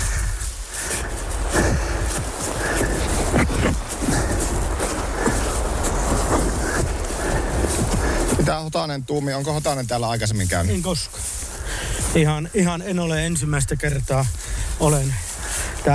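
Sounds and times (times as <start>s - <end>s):
waterfall rushing: 0.0s - 8.5s
speech: 8.6s - 11.4s, 12.1s - 15.9s.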